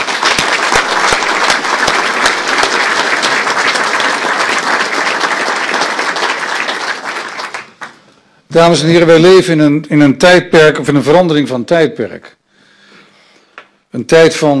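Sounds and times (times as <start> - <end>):
audience applause: 0.0 - 8.0
speech: 8.6 - 12.4, 13.9 - 14.5.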